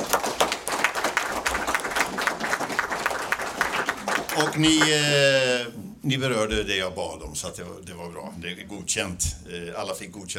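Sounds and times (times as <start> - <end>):
audience applause: 0.0 - 5.2
speech: 4.6 - 10.3.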